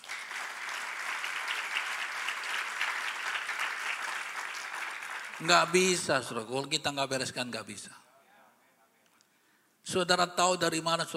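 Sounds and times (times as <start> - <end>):
audience applause: 0.0 - 6.0
speech: 5.4 - 8.0, 9.9 - 11.1.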